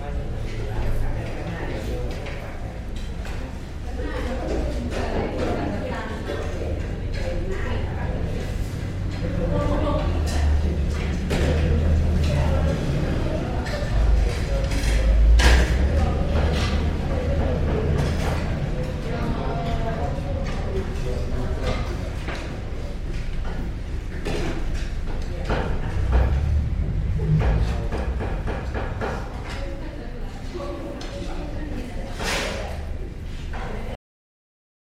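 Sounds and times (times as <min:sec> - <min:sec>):
people chattering in a Chiang Mai restaurant: 0:00.0 - 0:34.0
distant transportation: 0:06.8 - 0:31.4.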